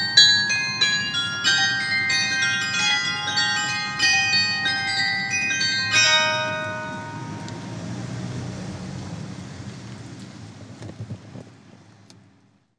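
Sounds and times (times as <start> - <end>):
carillon bells: 0.0 - 8.4.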